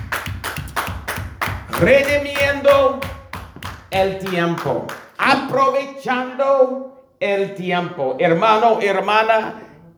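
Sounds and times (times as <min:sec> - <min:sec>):
audience clapping: 0:00.0 - 0:05.2
speech: 0:01.8 - 0:03.1, 0:03.9 - 0:09.6.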